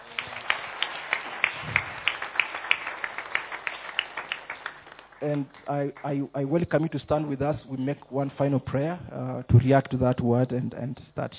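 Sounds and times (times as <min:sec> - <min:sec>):
audience clapping rhythmically: 0:00.0 - 0:06.8
speech: 0:05.2 - 0:11.3.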